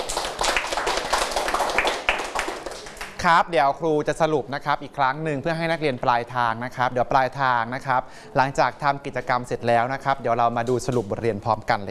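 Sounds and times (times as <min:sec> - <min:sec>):
students clapping in a classroom: 0:00.0 - 0:03.2
speech: 0:03.2 - 0:11.8.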